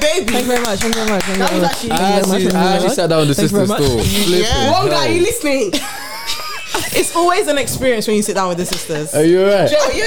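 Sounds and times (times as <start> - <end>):
sharp claps: 0.0 - 2.7
speech: 0.2 - 10.0.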